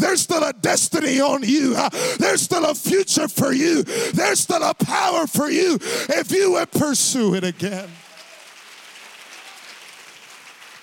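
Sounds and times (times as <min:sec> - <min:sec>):
speech: 0:00.2 - 0:08.0
audience clapping hands: 0:07.2 - 0:10.8.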